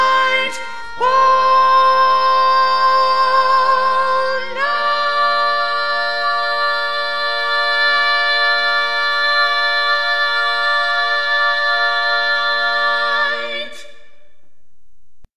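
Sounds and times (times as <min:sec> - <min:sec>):
baritone instrument: 0:00.0 - 0:14.2.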